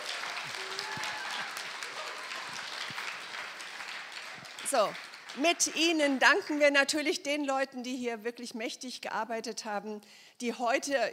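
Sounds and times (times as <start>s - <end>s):
audience applause: 0.0s - 6.6s
speech: 4.7s - 11.1s.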